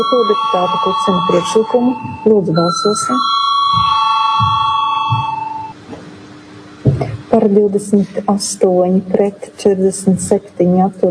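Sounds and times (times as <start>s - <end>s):
speech: 0.0s - 4.5s, 7.0s - 11.0s
parliamentary voting electric bell ringing: 0.0s - 5.8s.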